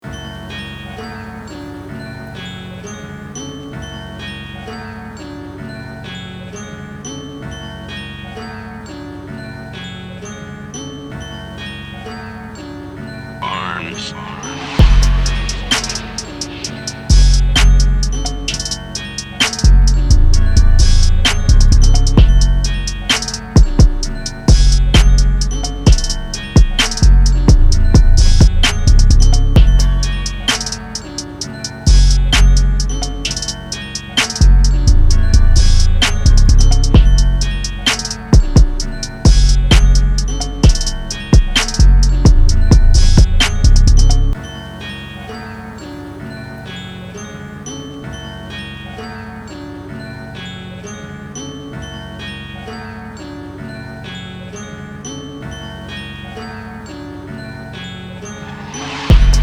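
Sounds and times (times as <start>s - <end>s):
instrumental music: 0.0s - 59.4s.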